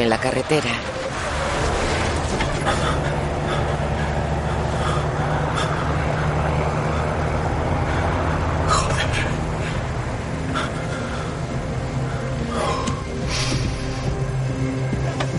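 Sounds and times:
truck accelerating at a crossing: 0.0 - 15.3
speech: 0.1 - 1.0, 2.3 - 3.3
car swerving: 0.8 - 15.3.

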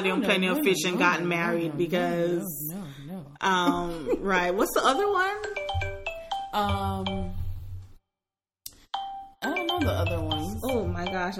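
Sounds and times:
speech: 0.0 - 5.9, 6.5 - 7.4, 9.4 - 11.3
mobile phone ringing: 5.4 - 7.6, 9.0 - 11.3.

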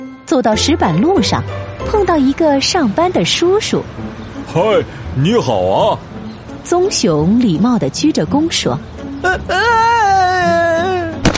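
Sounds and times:
speech: 0.3 - 10.9
man screaming in fright: 9.3 - 11.2.

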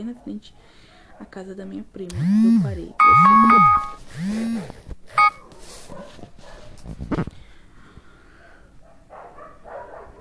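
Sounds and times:
speech: 0.0 - 5.3
mobile phone alarm: 2.6 - 4.0, 5.2 - 5.4.

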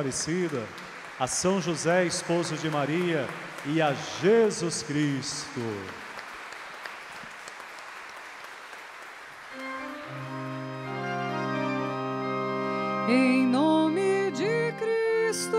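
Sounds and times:
speech: 0.0 - 6.0
audience round of applause: 0.0 - 11.2
sustained keyboard chords: 9.6 - 15.5.

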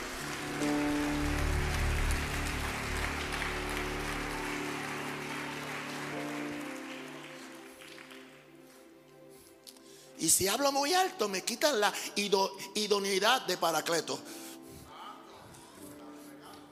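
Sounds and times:
audience applause: 0.0 - 8.9
speech: 10.2 - 14.4.

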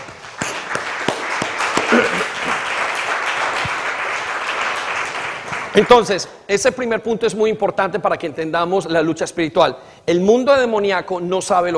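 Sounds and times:
audience applause: 0.0 - 6.1
speech: 5.8 - 11.7.

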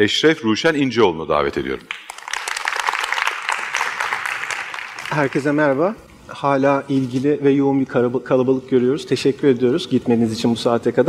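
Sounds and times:
speech: 0.0 - 2.1, 5.2 - 11.0
audience applause welcoming speakers: 1.9 - 5.6.

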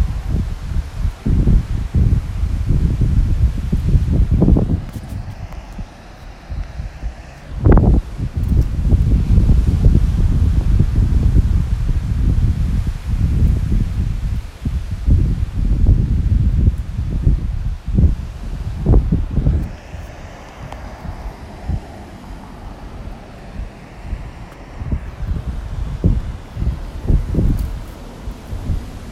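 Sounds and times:
gusts of wind buffeting the microphone: 0.0 - 29.1
traffic driving by in Los Angeles: 3.8 - 9.8, 18.2 - 29.1
waves crashing on a breezy Los Angeles day: 4.4 - 8.6, 18.4 - 29.1.

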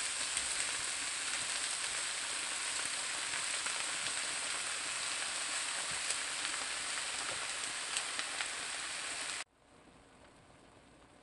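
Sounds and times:
spinach sautéing in a pan: 0.0 - 9.5.

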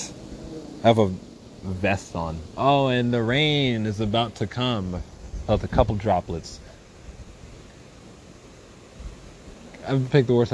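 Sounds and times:
wind blowing outdoors: 0.0 - 10.5
speech: 0.8 - 6.7, 9.8 - 10.5.

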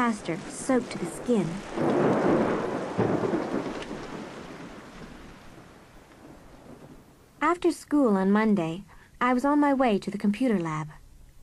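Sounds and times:
speech: 0.0 - 2.5, 7.5 - 11.0
heavy rain: 0.0 - 7.6.

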